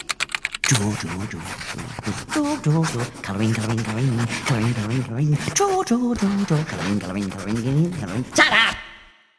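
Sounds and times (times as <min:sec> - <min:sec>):
typewriter keys clacking: 0:00.0 - 0:01.2
speech: 0:00.7 - 0:08.8.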